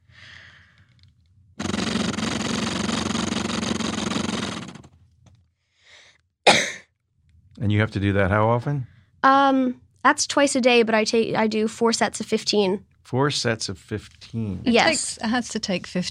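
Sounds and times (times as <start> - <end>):
soft breaths: 0.0 - 1.0
person exhaling through acapella flutter airway clearance device: 1.6 - 4.9
person coughing: 6.4 - 6.9
speech: 7.6 - 16.0.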